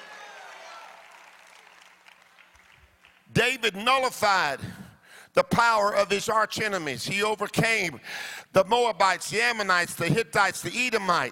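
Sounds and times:
church congregation applauding and cheering in a room: 0.0 - 4.6
speech: 3.3 - 11.3.

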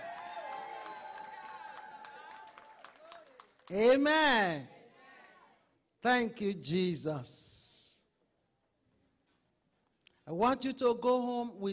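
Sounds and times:
crowd clapping: 0.0 - 4.0
speech: 3.7 - 4.8, 6.0 - 7.6, 10.3 - 11.7.

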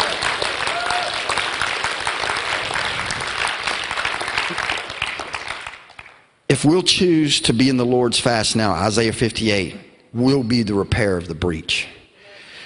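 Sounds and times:
audience hand clapping: 0.0 - 6.3
speech: 6.5 - 11.9.

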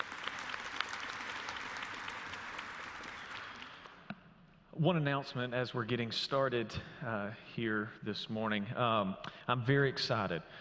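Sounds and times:
audience applause in a room: 0.0 - 4.0
speech: 4.8 - 10.5.

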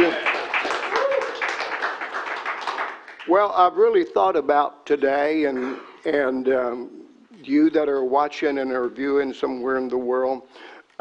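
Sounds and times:
hand clap of praise: 0.0 - 3.3
speech: 3.3 - 10.7.

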